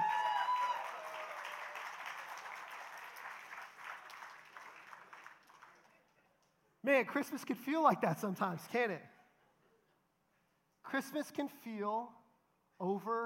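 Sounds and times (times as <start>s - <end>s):
round of applause: 0.0s - 6.3s
speech: 6.8s - 9.1s, 10.9s - 12.2s, 12.8s - 13.2s.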